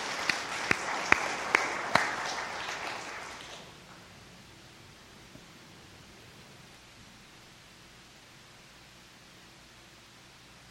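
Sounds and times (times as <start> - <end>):
audience clapping: 0.0 - 4.0.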